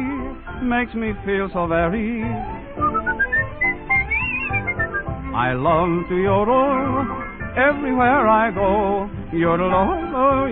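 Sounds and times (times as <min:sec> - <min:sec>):
speech: 0:00.6 - 0:02.9, 0:05.4 - 0:10.5
person whistling a melody: 0:02.3 - 0:05.4.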